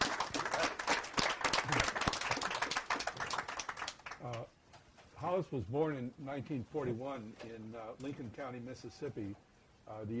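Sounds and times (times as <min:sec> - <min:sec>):
crowd applause: 0:00.0 - 0:04.4
speech: 0:05.3 - 0:10.1.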